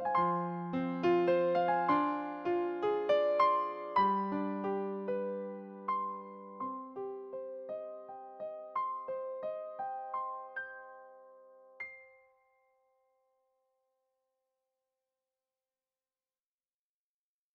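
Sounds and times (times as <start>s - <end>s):
piano: 0.0s - 13.6s.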